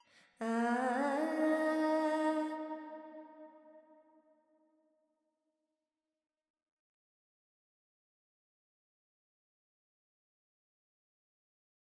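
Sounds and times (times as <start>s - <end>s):
Carnatic female vocal alaps in Dorian: 0.0s - 3.0s.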